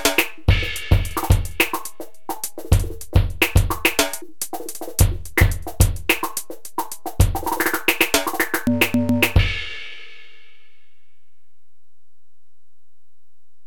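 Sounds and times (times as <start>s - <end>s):
drums: 0.0s - 10.6s.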